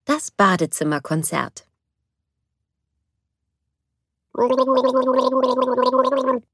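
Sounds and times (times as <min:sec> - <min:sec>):
speech: 0:00.2 - 0:01.7, 0:04.4 - 0:06.5
person gargling after brushing teeth: 0:04.3 - 0:06.5.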